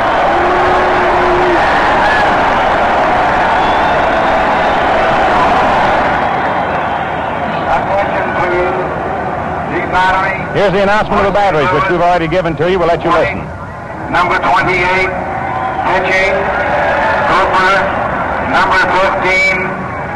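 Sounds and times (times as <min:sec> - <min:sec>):
large baseball crowd cheering: 0:00.0 - 0:13.1, 0:13.7 - 0:20.1
speech: 0:10.6 - 0:15.2, 0:15.8 - 0:16.6, 0:17.3 - 0:19.6.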